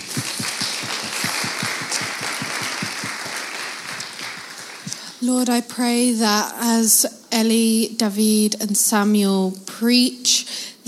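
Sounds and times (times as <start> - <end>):
crowd clapping: 0.0 - 5.2
speech: 5.2 - 10.8.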